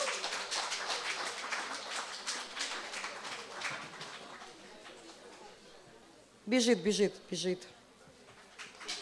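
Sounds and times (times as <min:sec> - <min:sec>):
audience applause: 0:00.0 - 0:05.2
speech: 0:06.5 - 0:07.8.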